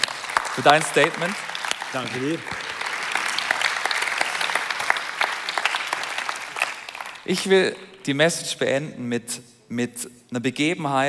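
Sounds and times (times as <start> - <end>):
audience applause: 0.0 - 7.5
speech: 0.6 - 2.6, 7.2 - 11.0.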